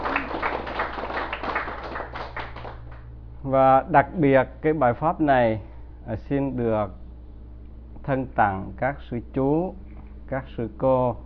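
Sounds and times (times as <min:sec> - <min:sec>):
audience clapping at a Buddhist dharma talk: 0:00.0 - 0:03.1
steady low hum: 0:00.0 - 0:11.2
speech: 0:03.5 - 0:07.0, 0:08.0 - 0:11.2.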